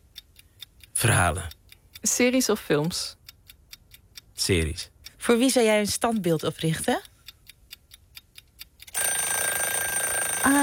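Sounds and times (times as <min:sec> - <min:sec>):
quiz timer ticking: 0:00.0 - 0:10.6
speech: 0:01.0 - 0:03.2, 0:04.4 - 0:07.1
quiz time-up bell ringing: 0:09.0 - 0:10.6.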